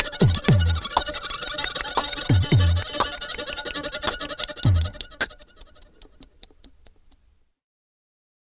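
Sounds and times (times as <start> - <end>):
oriental pitched tone: 0.0 - 6.7.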